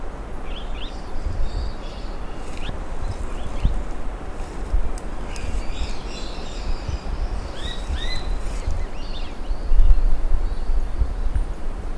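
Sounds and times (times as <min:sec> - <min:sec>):
bird chirping: 0:00.5 - 0:11.3.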